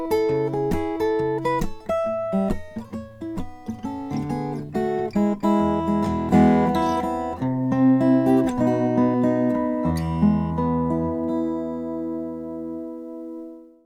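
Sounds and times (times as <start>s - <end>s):
Ribbecke Halfling Brazilian rosewood guitar with pin bridge: 0.0s - 13.8s.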